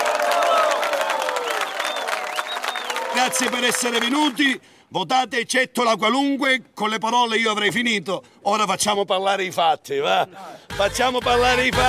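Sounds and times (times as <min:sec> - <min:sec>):
crowd applause: 0:00.0 - 0:04.4
whistles: 0:01.4 - 0:03.2
speech: 0:03.2 - 0:11.8.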